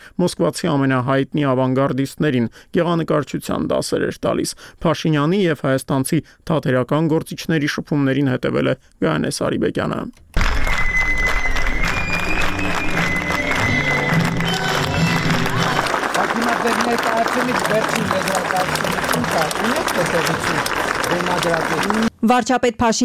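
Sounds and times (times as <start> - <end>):
speech: 0.1 - 10.6, 19.4 - 23.0
theatre audience cheering: 10.4 - 22.1
theatre audience in Armenia applauding after a performance: 10.4 - 22.1.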